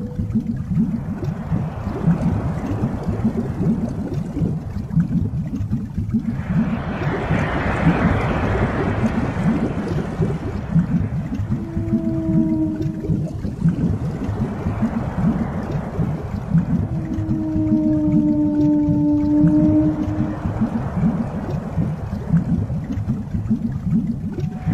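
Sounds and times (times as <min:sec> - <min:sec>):
heavy low rumble: 0:00.0 - 0:24.7
whale calls: 0:10.8 - 0:21.3, 0:24.4 - 0:24.7.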